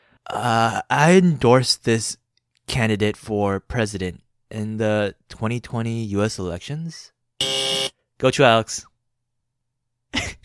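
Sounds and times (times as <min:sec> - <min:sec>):
speech: 0:00.3 - 0:07.2, 0:08.2 - 0:08.9
quiz buzzer buzzing in: 0:07.4 - 0:08.0.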